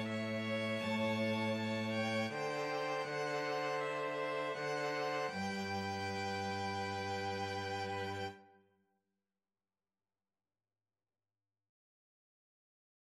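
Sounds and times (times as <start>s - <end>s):
strings: 0.0s - 8.5s.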